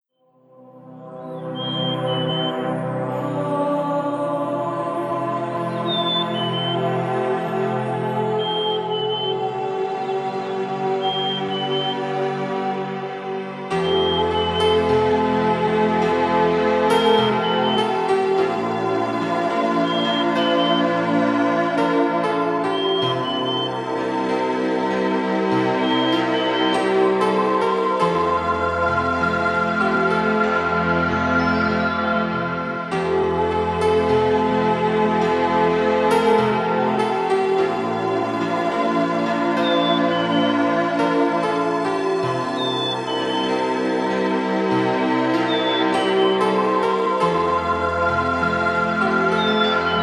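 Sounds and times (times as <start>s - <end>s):
relaxation music mix at 432 Hz: 0.4s - 50.0s.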